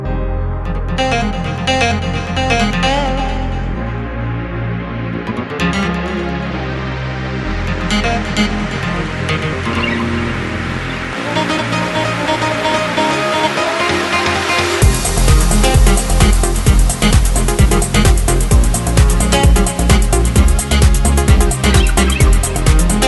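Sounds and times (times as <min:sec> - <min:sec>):
guitar: 0:00.0 - 0:23.0.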